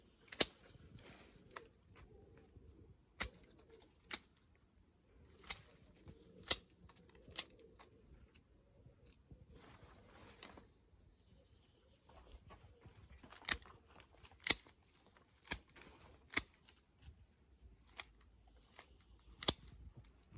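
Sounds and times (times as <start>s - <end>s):
garden pruning shears cutting a bush: 0.1s - 2.2s, 3.1s - 4.4s, 5.2s - 8.0s, 9.6s - 10.7s, 13.1s - 17.2s, 17.8s - 20.2s.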